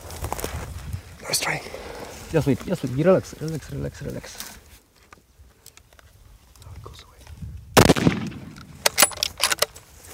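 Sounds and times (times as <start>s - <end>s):
speech: 1.3s - 4.6s
gunshots while hunting an animal: 7.8s - 9.1s.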